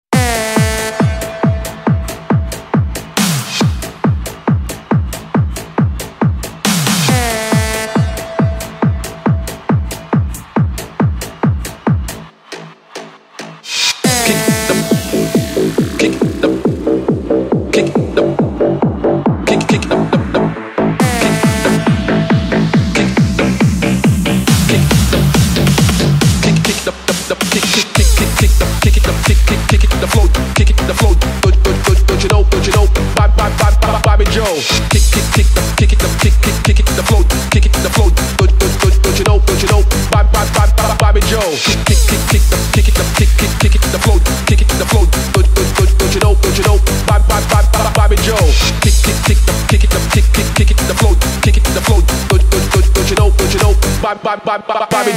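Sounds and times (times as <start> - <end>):
dance music: 0.0 - 55.1.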